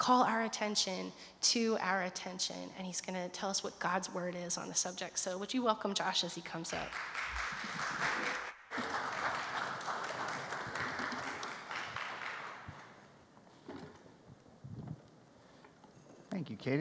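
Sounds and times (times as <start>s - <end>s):
speech: 0.0s - 8.4s
audience clapping: 6.7s - 13.1s.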